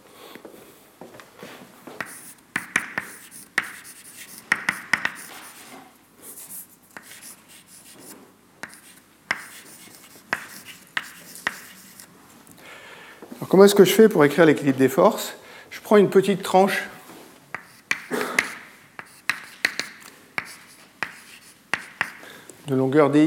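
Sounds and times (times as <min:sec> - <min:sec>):
force balance equation handwritten in scratchy strokes and taps: 0:02.0 - 0:05.8, 0:06.4 - 0:12.1, 0:17.5 - 0:22.2
speech: 0:13.5 - 0:16.9, 0:22.9 - 0:23.2.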